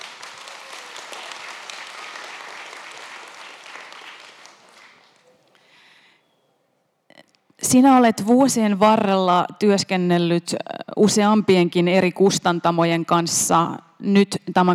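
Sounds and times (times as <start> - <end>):
audience applause: 0.0 - 5.4
speech: 7.7 - 14.7.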